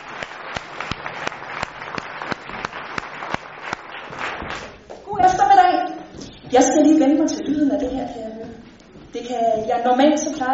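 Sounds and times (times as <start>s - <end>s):
audience applause: 0.0s - 4.8s
speech: 6.5s - 8.4s, 9.3s - 10.5s.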